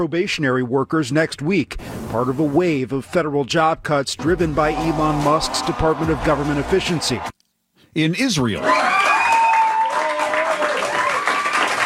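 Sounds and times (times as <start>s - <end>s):
speech: 0.0s - 8.9s
scattered cheers and voices: 4.3s - 7.3s, 8.6s - 11.6s
crowd applause: 4.7s - 7.3s, 8.6s - 11.8s.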